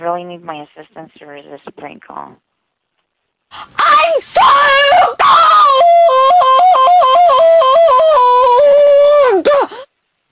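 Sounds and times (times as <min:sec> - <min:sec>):
speech: 0:00.0 - 0:02.5, 0:03.5 - 0:05.5
woman screaming on a phone call: 0:03.6 - 0:09.6.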